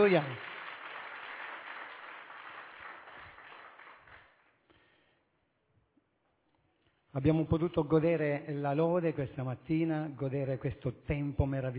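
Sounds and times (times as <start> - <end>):
speech: 0.0 - 0.5, 7.1 - 11.7
audience applause: 0.0 - 4.5.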